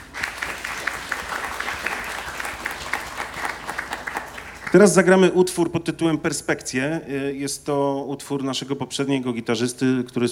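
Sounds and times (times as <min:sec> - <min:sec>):
audience applause: 0:00.0 - 0:05.1
speech: 0:04.7 - 0:10.3.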